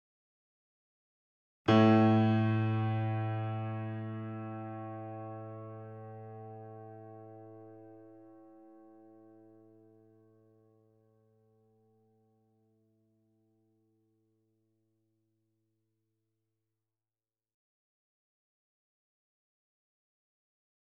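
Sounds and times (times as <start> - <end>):
grand piano notes C2 E2 A2: 1.7 - 9.5.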